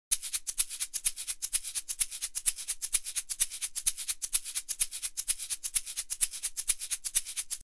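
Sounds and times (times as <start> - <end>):
shaker: 0.0 - 7.6.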